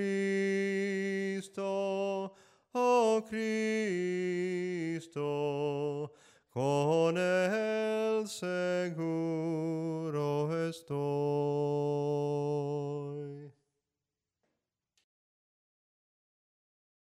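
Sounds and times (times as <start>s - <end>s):
soprano singing hymns: 0.0s - 13.5s.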